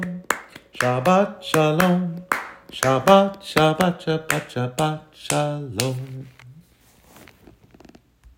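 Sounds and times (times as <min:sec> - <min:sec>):
clapping: 0:00.0 - 0:06.0
Jewish hymn: 0:00.0 - 0:06.6.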